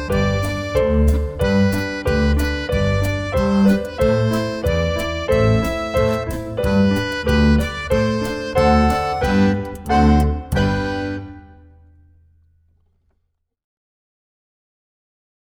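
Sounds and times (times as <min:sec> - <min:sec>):
Swiss dance backing track: 0:00.0 - 0:11.4.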